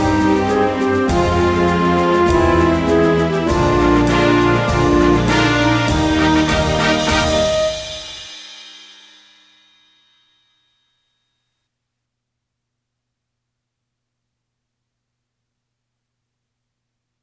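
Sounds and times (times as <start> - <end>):
backing track with melody: 0.0 - 8.3.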